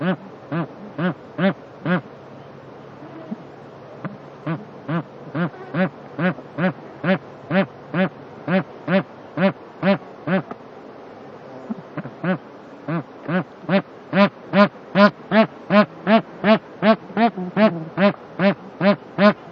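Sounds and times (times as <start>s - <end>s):
bar-headed goose honking: 0.0s - 2.0s, 4.4s - 10.5s, 12.0s - 19.5s.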